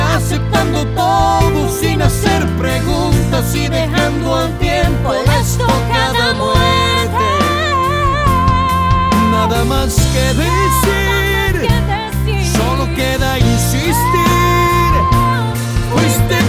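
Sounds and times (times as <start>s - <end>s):
person singing in Latin American Spanish: 0.0s - 16.4s.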